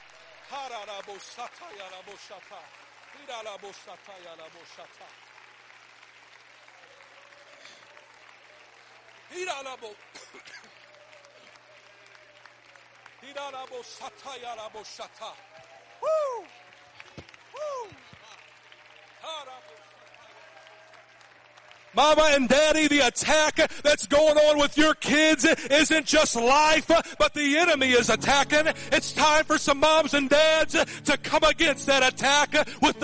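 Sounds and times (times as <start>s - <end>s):
audience clapping hands: 0.0s - 33.0s
speech: 0.5s - 5.3s, 9.3s - 10.7s, 13.2s - 16.6s, 22.0s - 33.0s.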